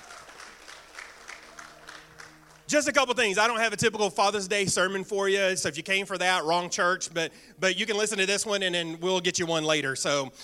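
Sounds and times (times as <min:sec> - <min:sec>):
church congregation applauding during a Father's Day service: 0:00.0 - 0:03.3
speech: 0:02.7 - 0:10.4.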